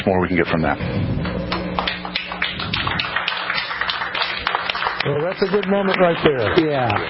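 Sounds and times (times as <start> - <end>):
speech: 0.0 - 1.2, 5.0 - 7.0
crowd applause: 1.8 - 7.0.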